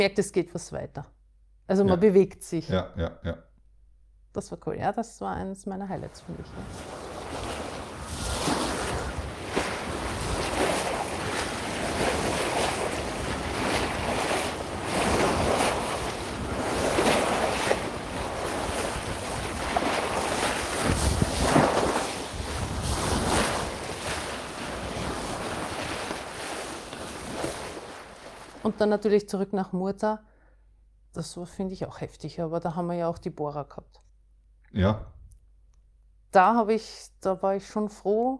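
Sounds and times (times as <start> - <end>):
speech: 0.0 - 3.5, 4.3 - 7.8, 28.7 - 30.3, 31.1 - 34.0, 34.7 - 35.2, 36.3 - 38.3
waves at sea: 6.0 - 29.0
wind at sea: 6.2 - 28.7.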